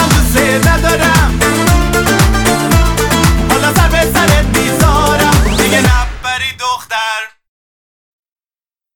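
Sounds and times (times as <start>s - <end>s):
stylized oriental dance music: 0.0s - 7.1s.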